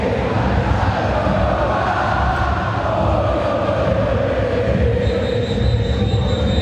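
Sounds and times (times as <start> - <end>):
stadium crowd of nervous Boca Juniors fans urging their team on: 0.0 - 6.6.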